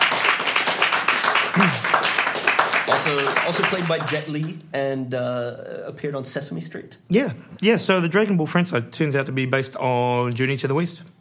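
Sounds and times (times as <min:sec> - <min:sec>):
round of applause: 0:00.0 - 0:04.6
speech: 0:01.6 - 0:01.8, 0:02.9 - 0:11.2.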